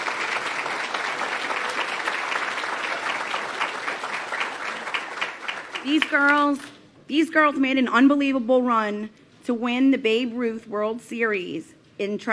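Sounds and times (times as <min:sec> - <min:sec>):
audience applause: 0:00.0 - 0:06.3
speech: 0:05.8 - 0:12.3.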